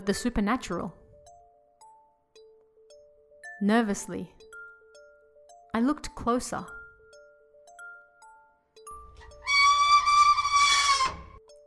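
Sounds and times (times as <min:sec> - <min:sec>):
speech: 0:00.0 - 0:01.0, 0:03.6 - 0:04.4, 0:05.8 - 0:06.8
machine screw turning, screaming like a human: 0:09.2 - 0:11.4.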